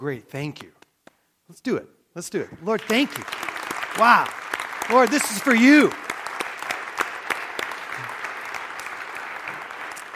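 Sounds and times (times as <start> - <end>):
speech: 0.0 - 0.8, 1.5 - 6.0
audience applause: 2.8 - 10.1.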